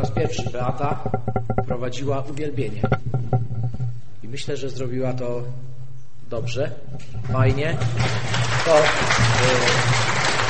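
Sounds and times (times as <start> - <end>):
speech: 0.0 - 3.4, 4.3 - 5.7, 6.3 - 10.0
church congregation applauding: 7.8 - 10.4.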